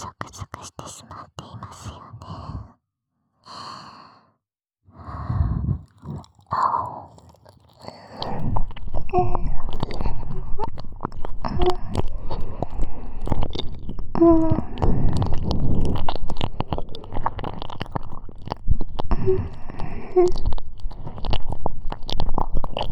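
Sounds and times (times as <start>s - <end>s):
deep ear licking ASMR sounds: 5.8s - 22.9s.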